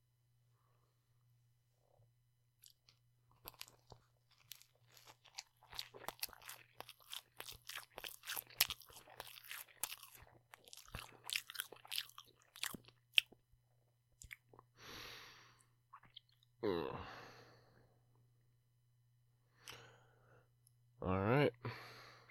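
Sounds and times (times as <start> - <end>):
chewing a crunchy mouthful of food: 2.6 - 13.4, 14.2 - 14.7
soft breaths and sigh: 14.7 - 15.8, 16.6 - 18.0, 19.5 - 20.6, 21.6 - 22.2.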